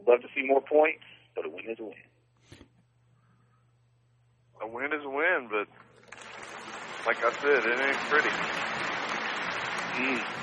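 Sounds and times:
speech: 0:00.1 - 0:02.6, 0:04.6 - 0:05.8, 0:07.0 - 0:08.9, 0:10.0 - 0:10.4
canned applause sound effect: 0:06.0 - 0:10.4.

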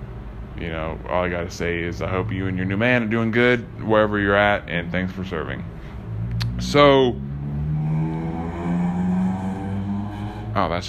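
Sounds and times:
speech: 0:00.6 - 0:05.8, 0:06.6 - 0:07.2, 0:10.6 - 0:10.8
Honda Civic car engines racing down a street: 0:06.1 - 0:10.7.

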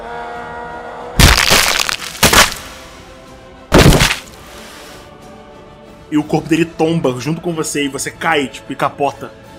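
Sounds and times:
hammer blow breaking a stick: 0:01.2 - 0:02.8, 0:03.7 - 0:04.4
speech: 0:06.1 - 0:09.4.

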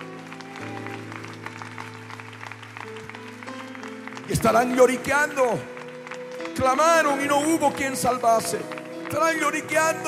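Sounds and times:
audience applause: 0:00.0 - 0:10.0
speech: 0:04.3 - 0:05.7, 0:06.6 - 0:10.0.

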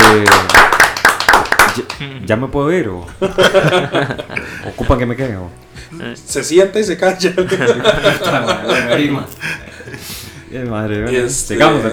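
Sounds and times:
applause: 0:00.0 - 0:02.0
speech: 0:00.1 - 0:00.5, 0:02.0 - 0:11.9
laughter: 0:03.1 - 0:05.1, 0:07.0 - 0:10.3.

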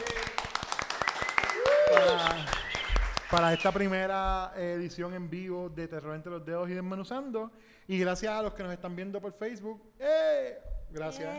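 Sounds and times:
crowd applauding: 0:00.0 - 0:03.9
speech: 0:03.3 - 0:11.3.

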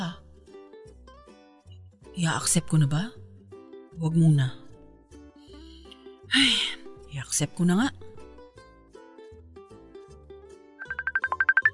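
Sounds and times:
speech: 0:02.2 - 0:03.2, 0:04.0 - 0:04.6, 0:06.3 - 0:08.1
phone ringing with an incoming call: 0:10.8 - 0:11.7.

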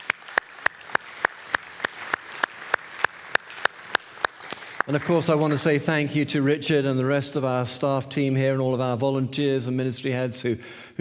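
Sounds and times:
audience applause: 0:00.0 - 0:05.8
speech: 0:04.9 - 0:10.9.

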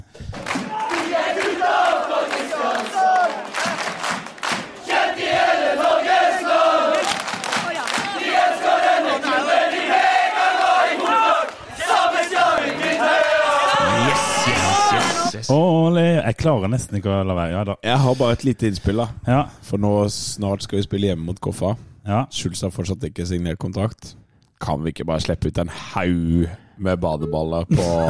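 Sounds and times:
football fans and players cheering and shouting: 0:00.6 - 0:15.4
speech: 0:15.5 - 0:28.0.

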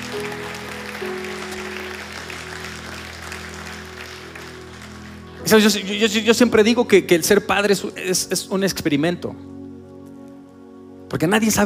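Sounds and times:
audience applauding together: 0:00.0 - 0:05.7
speech: 0:05.5 - 0:09.5, 0:11.1 - 0:11.6.

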